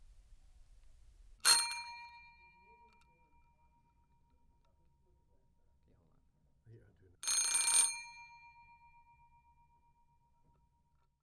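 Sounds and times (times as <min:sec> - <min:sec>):
antique twist doorbell ringing: 0:01.4 - 0:03.0, 0:07.2 - 0:09.0.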